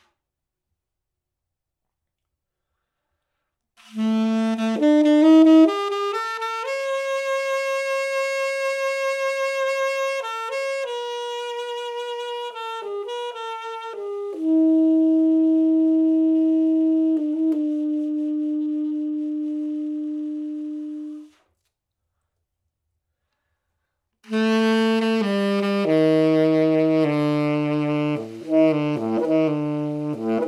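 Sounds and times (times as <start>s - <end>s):
tenor saxophone: 3.8s - 21.6s, 24.2s - 30.4s.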